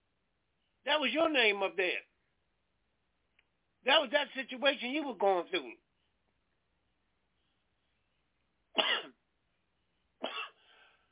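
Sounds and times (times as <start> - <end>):
speech: 0.9 - 2.1, 3.8 - 5.8
preacher coughing during a church sermon: 8.8 - 9.2, 10.2 - 10.6.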